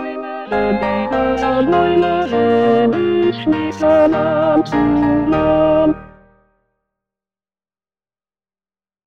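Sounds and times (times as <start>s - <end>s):
tenor singing: 0.0s - 6.2s.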